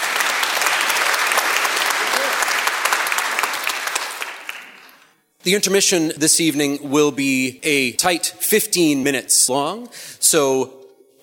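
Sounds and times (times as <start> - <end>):
audience applause: 0.0 - 5.1
speech: 5.5 - 10.8.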